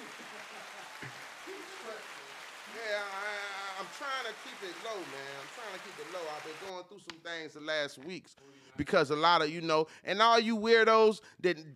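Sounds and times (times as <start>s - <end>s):
applause: 0.0s - 6.7s
speech: 2.9s - 11.7s.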